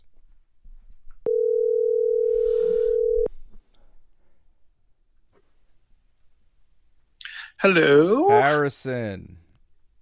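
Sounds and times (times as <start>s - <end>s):
old telephone ringing: 1.3s - 3.3s
speech: 7.6s - 9.4s.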